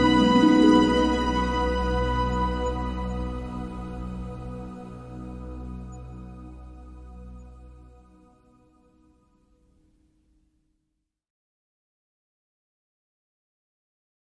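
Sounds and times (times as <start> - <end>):
violin: 0.0 - 7.8.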